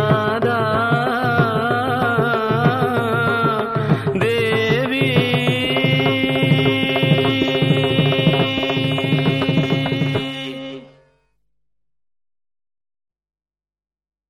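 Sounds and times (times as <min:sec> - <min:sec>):
man's voice: 0:00.0 - 0:11.0.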